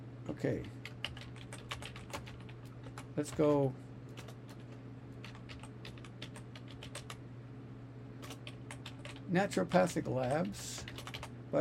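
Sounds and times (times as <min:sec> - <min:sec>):
speech: 0:00.3 - 0:00.8, 0:03.2 - 0:03.8, 0:09.3 - 0:10.9
fingers typing on a computer keyboard: 0:00.6 - 0:03.4, 0:04.1 - 0:07.2, 0:08.2 - 0:09.2, 0:10.2 - 0:11.3.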